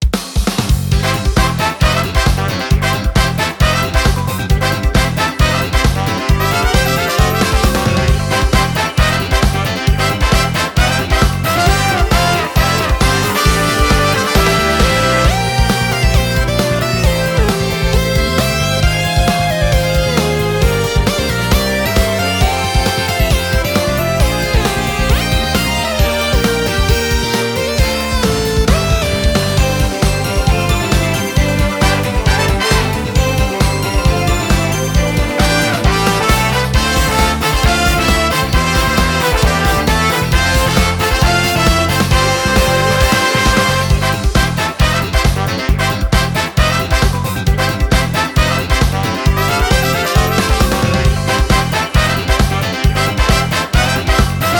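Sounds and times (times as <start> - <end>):
music at an event: 0.0 - 54.5.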